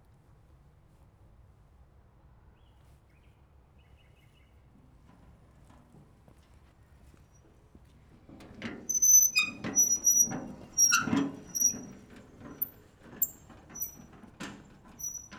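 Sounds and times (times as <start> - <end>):
wheelbarrow: 8.2 - 15.2.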